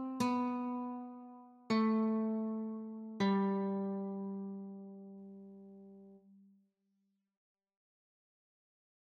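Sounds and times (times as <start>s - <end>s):
guitar notes: 0.0s - 6.2s.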